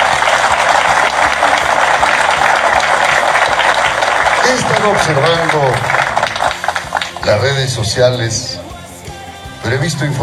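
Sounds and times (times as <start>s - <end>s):
audience applause: 0.0s - 7.4s
speech: 4.5s - 6.0s, 7.2s - 8.6s, 9.6s - 10.2s.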